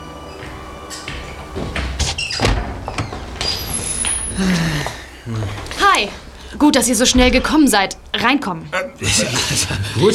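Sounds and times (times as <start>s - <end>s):
door opening: 0.4s - 4.4s, 6.8s - 8.2s
speech: 4.4s - 10.1s.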